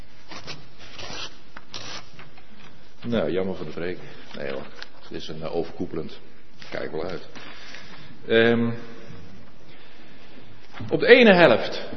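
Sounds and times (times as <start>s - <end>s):
sheet of A4 paper folded in half crosswise: 0.2s - 5.3s
speech: 3.0s - 7.5s, 8.2s - 9.0s, 10.8s - 11.9s.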